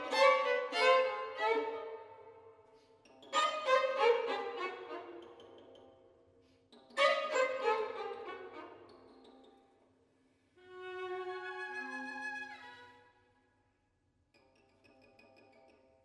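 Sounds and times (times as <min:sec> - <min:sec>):
string quartet: 0:00.0 - 0:02.4, 0:03.3 - 0:05.6, 0:07.0 - 0:08.9, 0:10.6 - 0:13.0.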